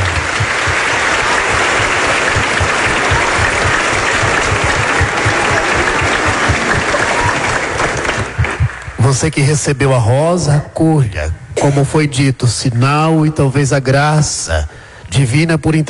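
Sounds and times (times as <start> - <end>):
big round of applause: 0.0 - 9.3
speech: 9.1 - 15.8.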